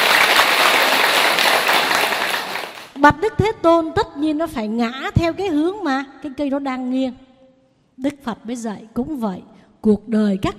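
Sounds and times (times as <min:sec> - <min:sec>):
audience applause at a Buddhist nun's dharma talk: 0:00.0 - 0:03.0
speech: 0:03.0 - 0:07.2, 0:08.0 - 0:10.5.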